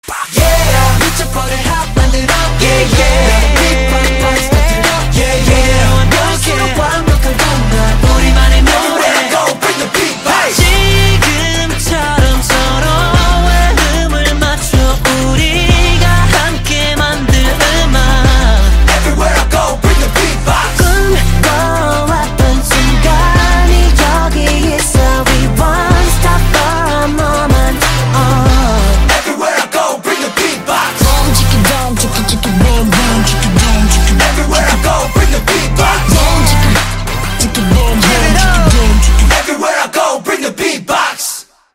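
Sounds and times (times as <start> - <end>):
beatbox: 0.0 - 41.2.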